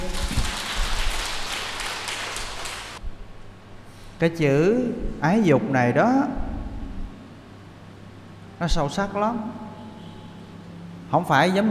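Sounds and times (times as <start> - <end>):
crowd applauding: 0.0 - 3.0
speech: 4.2 - 6.4, 8.6 - 9.6, 11.1 - 11.6.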